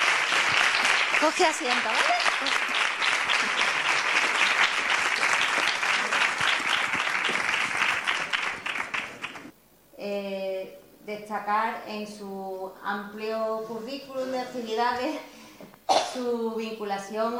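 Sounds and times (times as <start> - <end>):
audience applause: 0.0 - 9.5
speech: 1.2 - 3.8, 10.0 - 15.3, 16.2 - 17.3.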